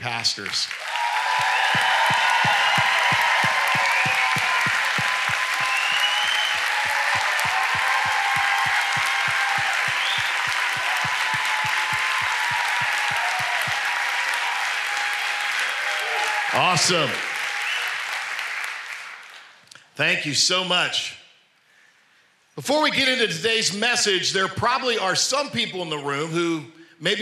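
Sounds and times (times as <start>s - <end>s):
audience cheers: 0.0s - 19.4s
large audience clapping: 0.0s - 19.6s
speech: 0.2s - 2.2s, 16.6s - 17.3s, 20.0s - 21.2s, 22.6s - 27.2s
audience whistles: 1.1s - 13.9s, 17.5s - 18.1s.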